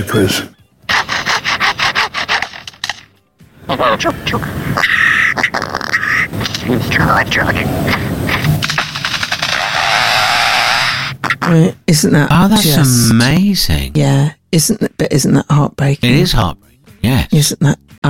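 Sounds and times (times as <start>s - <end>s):
speech: 0.0s - 0.6s, 3.7s - 8.1s, 11.4s - 18.0s
bird mimicking mechanical saws with rasping bursts and whirring: 0.9s - 3.0s, 4.7s - 11.4s.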